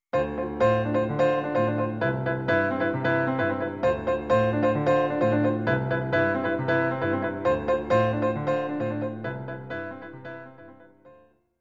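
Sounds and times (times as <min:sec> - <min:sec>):
underwater background music: 0:00.2 - 0:10.7.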